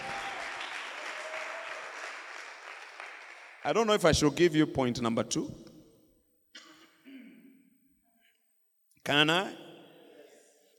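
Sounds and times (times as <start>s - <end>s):
audience clapping: 0.0s - 4.0s
speech: 3.6s - 5.6s, 9.1s - 9.6s.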